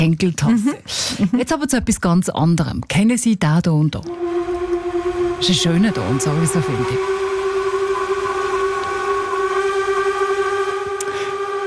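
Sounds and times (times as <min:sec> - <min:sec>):
speech: 0:00.0 - 0:04.5, 0:05.4 - 0:07.2
steamship horn blast: 0:04.1 - 0:11.6.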